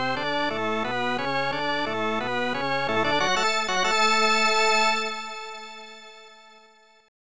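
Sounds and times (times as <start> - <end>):
baseball fanfare: 0.2 - 6.0.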